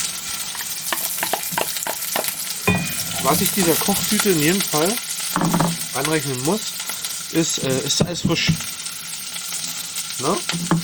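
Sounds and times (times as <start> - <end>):
onions sizzling in hot oil: 0.0 - 10.8
speech: 3.3 - 8.8, 10.2 - 10.8.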